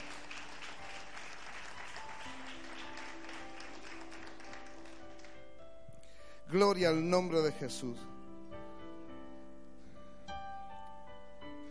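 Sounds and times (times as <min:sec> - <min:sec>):
audience applause: 0:00.0 - 0:05.4
speech: 0:06.5 - 0:08.1.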